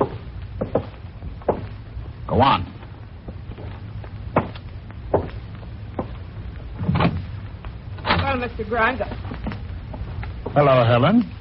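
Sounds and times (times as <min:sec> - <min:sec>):
low noise: 0:00.0 - 0:11.3
speech: 0:02.3 - 0:02.7, 0:08.5 - 0:09.2, 0:10.6 - 0:11.3
wooden door being opened with clunks and thumps: 0:06.8 - 0:07.2.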